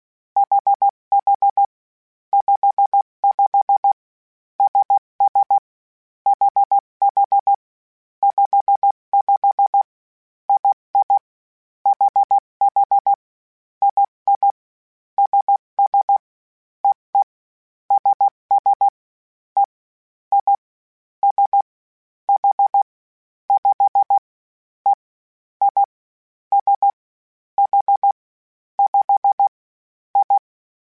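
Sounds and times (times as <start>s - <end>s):
Morse code CW code groups of basic letters: 0.4s - 1.7s, 2.4s - 4.0s, 4.6s - 5.6s, 6.3s - 7.5s, 8.2s - 9.8s, 10.5s - 11.2s, 11.9s - 13.2s, 13.8s - 14.6s, 15.2s - 16.2s, 17.9s - 18.9s, 20.3s - 20.6s, 21.2s - 21.6s, 22.4s - 22.8s, 23.6s - 24.2s, 25.6s - 25.9s, 26.5s - 26.9s, 27.6s - 28.1s, 28.8s - 29.5s, 30.2s - 30.4s.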